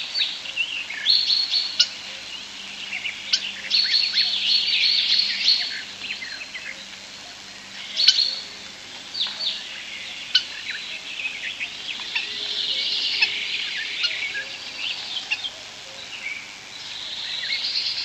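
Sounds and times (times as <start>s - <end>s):
European starlings chattering: 0.0s - 18.0s.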